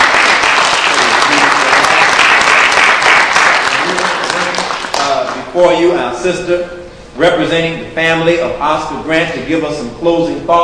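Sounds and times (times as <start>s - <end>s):
crowd applause: 0.0s - 5.4s
speech: 5.6s - 10.6s.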